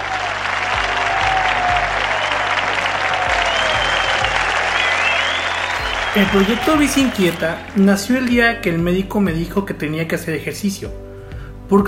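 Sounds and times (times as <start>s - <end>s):
audience applause: 0.0s - 8.3s
speech: 6.1s - 11.0s.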